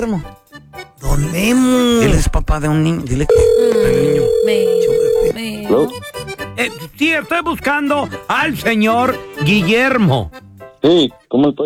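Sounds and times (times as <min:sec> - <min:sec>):
speech: 0:00.0 - 0:00.4, 0:01.1 - 0:11.6
telephone ringing on a call placed to a listener: 0:03.3 - 0:05.5
voice on the telephone line: 0:03.3 - 0:05.9.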